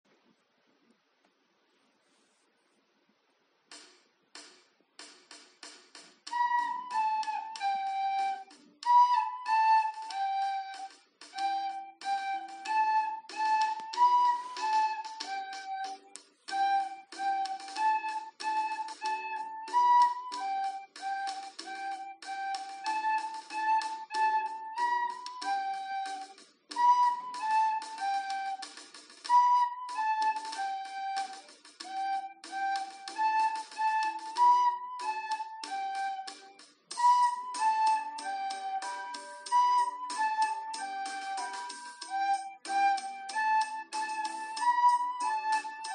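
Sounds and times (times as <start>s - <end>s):
flute exercise: 6.0s - 45.9s.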